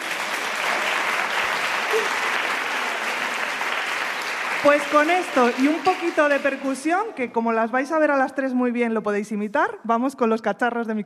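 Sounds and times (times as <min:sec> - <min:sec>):
audience applause: 0:00.0 - 0:07.0
speech: 0:02.0 - 0:02.2, 0:04.6 - 0:11.0.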